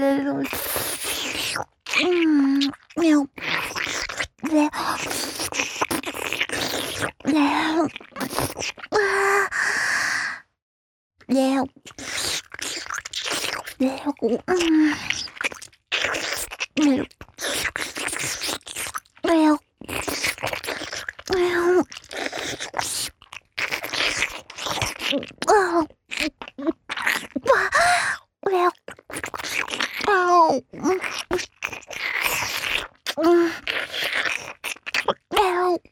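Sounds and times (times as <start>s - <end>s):
wet sucking sounds: 0.2s - 10.3s, 11.7s - 30.2s, 30.7s - 35.7s
wet licking: 0.5s - 7.3s, 7.9s - 8.9s, 11.9s - 13.8s, 14.9s - 19.2s, 19.8s - 27.6s, 28.8s - 30.1s, 30.8s - 35.4s.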